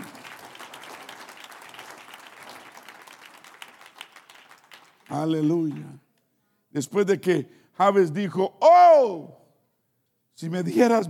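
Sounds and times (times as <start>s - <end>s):
audience applause: 0.0s - 5.4s
speech: 5.1s - 6.0s, 6.8s - 9.4s, 10.4s - 11.0s.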